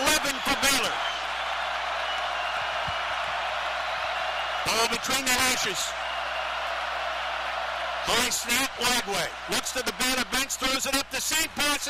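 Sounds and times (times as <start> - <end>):
large football stadium crowd cheering: 0.0 - 11.8
speech: 4.7 - 6.0, 8.1 - 11.8.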